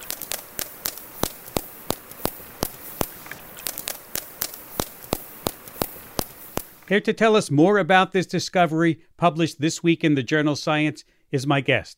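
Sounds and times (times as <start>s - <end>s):
whale vocal fry echolocation clicks: 0.0s - 6.9s
speech: 6.9s - 11.9s.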